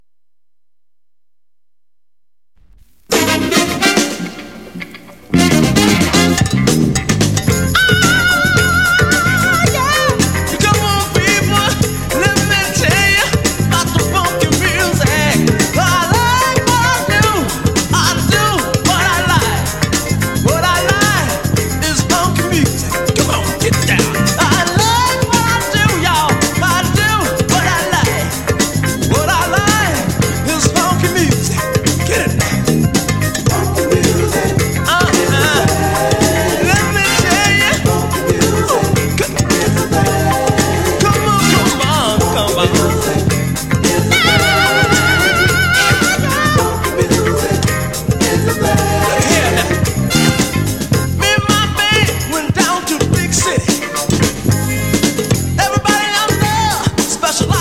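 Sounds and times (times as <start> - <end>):
funky music: 2.6 - 57.6.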